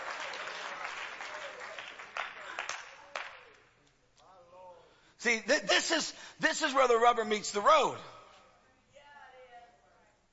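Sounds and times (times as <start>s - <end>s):
audience hand claps: 0.0s - 3.9s
speech: 5.2s - 8.1s.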